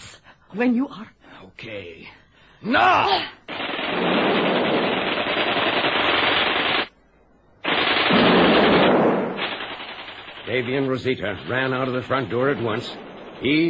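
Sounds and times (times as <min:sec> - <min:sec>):
speech: 0:00.5 - 0:04.6, 0:10.5 - 0:13.6
rapid automatic gunfire: 0:03.5 - 0:06.9, 0:07.6 - 0:11.0.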